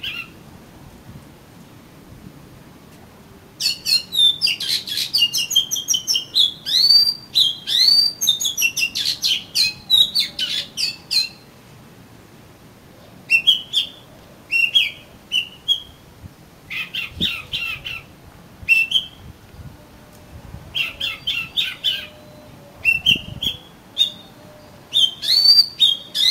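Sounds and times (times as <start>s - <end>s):
Oriental magpie-robin song: 0.0s - 0.4s, 3.6s - 11.6s, 12.9s - 16.0s, 16.7s - 18.1s, 18.7s - 19.8s, 20.7s - 26.2s.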